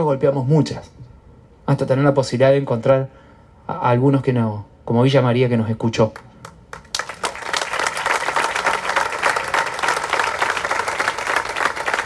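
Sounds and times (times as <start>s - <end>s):
speech: 0.0s - 1.0s, 1.7s - 6.3s
crowd applauding: 6.4s - 12.0s.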